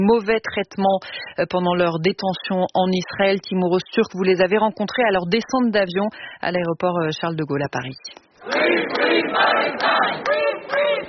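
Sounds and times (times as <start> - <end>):
speech: 0.0 - 11.0
welcoming crowd applauding: 8.5 - 11.0.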